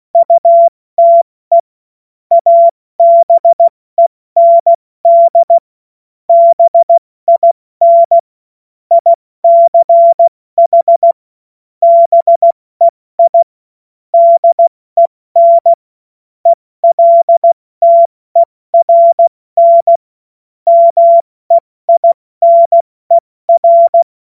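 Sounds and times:
CW Morse code beeps: 0:00.2 - 0:01.6, 0:02.3 - 0:03.7, 0:04.4 - 0:05.6, 0:06.3 - 0:08.2, 0:08.9 - 0:11.2, 0:11.8 - 0:13.5, 0:14.2 - 0:15.8, 0:16.5 - 0:20.0, 0:20.7 - 0:24.1.

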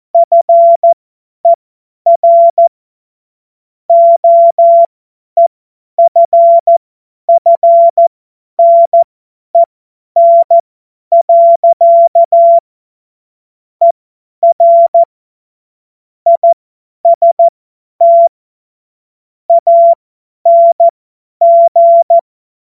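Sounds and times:
CW Morse code beeps: 0:00.2 - 0:02.7, 0:03.9 - 0:04.9, 0:06.0 - 0:09.0, 0:09.6 - 0:12.6, 0:14.4 - 0:15.1, 0:16.3 - 0:18.3, 0:19.5 - 0:22.6.

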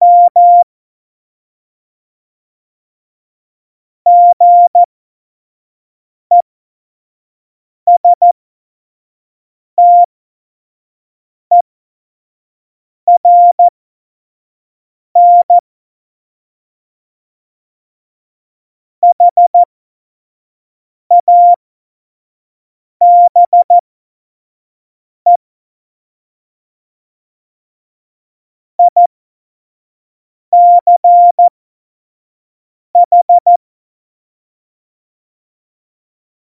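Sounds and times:
Morse code beeps for a Morse course: 0:00.0 - 0:00.6, 0:04.1 - 0:04.9, 0:07.9 - 0:08.3, 0:09.8 - 0:10.1, 0:13.1 - 0:13.7, 0:15.2 - 0:15.6, 0:19.0 - 0:19.7, 0:21.1 - 0:21.6, 0:23.0 - 0:23.8, 0:28.8 - 0:29.1, 0:30.6 - 0:31.5, 0:33.0 - 0:33.6.

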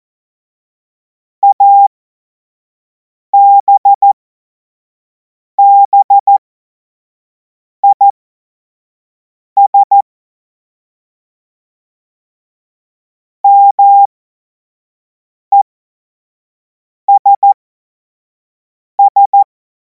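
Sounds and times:
morse code CW: 0:01.4 - 0:01.9, 0:03.4 - 0:04.2, 0:05.6 - 0:06.4, 0:07.8 - 0:08.0, 0:13.5 - 0:14.1, 0:17.2 - 0:17.6, 0:19.0 - 0:19.4.

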